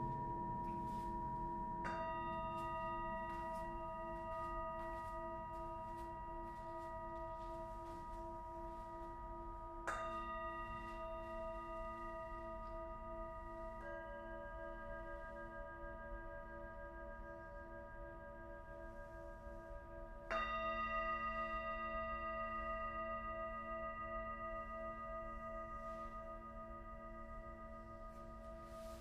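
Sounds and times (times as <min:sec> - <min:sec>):
constant low rumble: 0:00.0 - 0:05.1
singing bowls ringing in a sound bath: 0:00.0 - 0:28.9.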